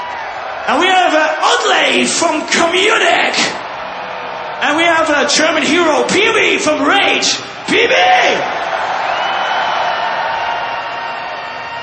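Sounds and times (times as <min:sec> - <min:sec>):
live concert crowd cheering: 0:00.0 - 0:11.8
speech: 0:00.7 - 0:03.6, 0:04.6 - 0:08.6.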